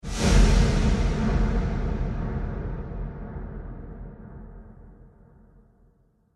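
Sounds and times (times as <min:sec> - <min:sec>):
trailer hit: 0:00.0 - 0:04.9.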